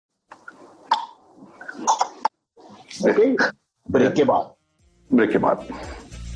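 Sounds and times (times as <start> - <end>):
vocal imitation of cricket ball leaving bat: 0.3 - 3.0
speech: 3.0 - 6.0.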